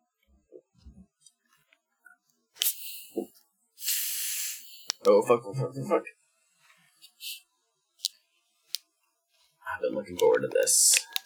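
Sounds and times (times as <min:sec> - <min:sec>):
Faygo cream soda fizzing as it is cracked open: 0:02.6 - 0:05.0
speech: 0:05.0 - 0:06.2, 0:10.0 - 0:11.1
handling clicks and knocks: 0:10.0 - 0:11.2.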